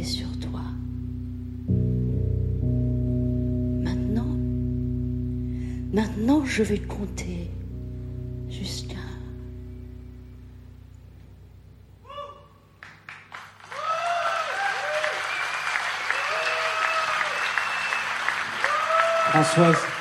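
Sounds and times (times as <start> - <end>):
low hum: 0.0 - 14.0
speech: 6.0 - 7.6, 19.6 - 19.9
audience applause: 12.8 - 20.0
shrill whistles and cheers: 13.6 - 20.0.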